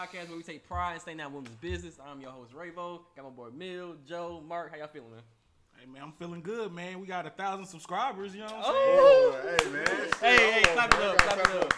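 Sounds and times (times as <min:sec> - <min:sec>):
speech: 0:00.0 - 0:11.7
hands clapping: 0:01.4 - 0:01.8, 0:09.4 - 0:11.7.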